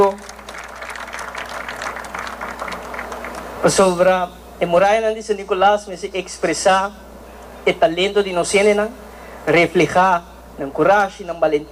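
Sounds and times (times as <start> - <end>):
applause: 0.0 - 3.9
speech: 3.6 - 7.0, 7.6 - 11.7.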